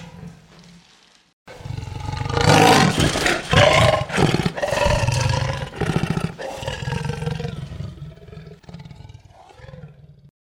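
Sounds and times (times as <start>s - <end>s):
leopard growling: 0.0s - 10.3s.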